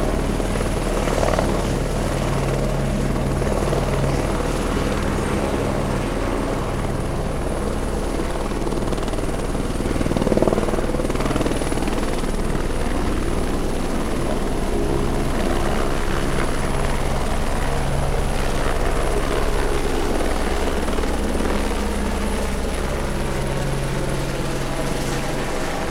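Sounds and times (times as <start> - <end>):
helicopter starting up, running and taking off from a landing pad: 0.0 - 25.8.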